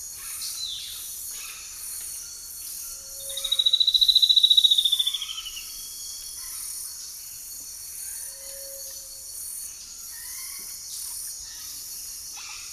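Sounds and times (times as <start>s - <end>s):
Spot-winged antbird song with high whistled notes: 3.1s - 5.8s.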